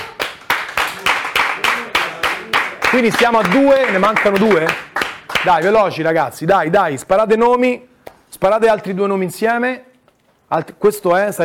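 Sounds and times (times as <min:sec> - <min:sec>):
audience applauding: 0:00.0 - 0:05.8
speech: 0:02.9 - 0:09.9, 0:10.5 - 0:11.4.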